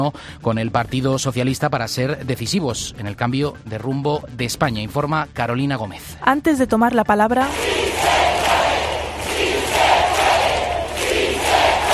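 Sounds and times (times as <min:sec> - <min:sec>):
speech: 0:00.0 - 0:08.2
crowd chanting: 0:07.5 - 0:11.9.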